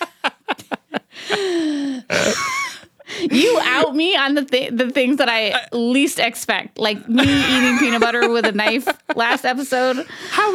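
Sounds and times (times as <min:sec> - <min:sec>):
laughter: 0:00.0 - 0:04.0, 0:07.1 - 0:10.5
pregnant woman breathing heavily catching her breath: 0:01.0 - 0:03.7, 0:09.9 - 0:10.5
speech: 0:04.0 - 0:10.5.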